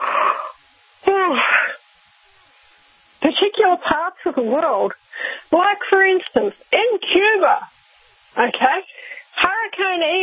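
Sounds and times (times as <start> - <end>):
person yawning: 0.0 - 0.6, 1.2 - 1.8
speech: 3.4 - 7.8, 8.4 - 10.2.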